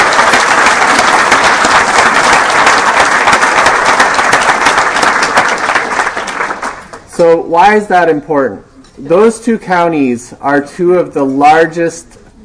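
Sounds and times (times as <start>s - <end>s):
crowd applauding: 0.0s - 7.1s
speech: 7.2s - 12.2s.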